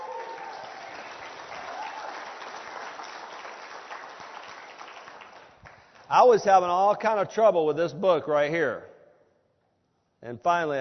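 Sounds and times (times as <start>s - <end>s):
audience applause: 0.0s - 6.1s
speech: 6.1s - 8.9s, 10.2s - 10.7s.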